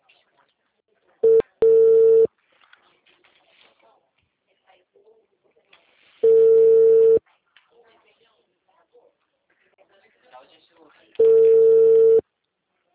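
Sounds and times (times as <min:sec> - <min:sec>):
telephone call tone while dialing someone: 0:01.2 - 0:02.3, 0:06.2 - 0:07.2, 0:11.2 - 0:12.2.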